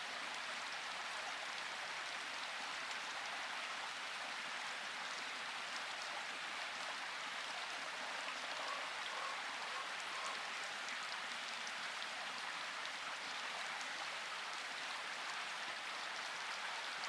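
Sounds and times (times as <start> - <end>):
rain in forest: 0.0 - 17.0
birds: 8.6 - 10.4.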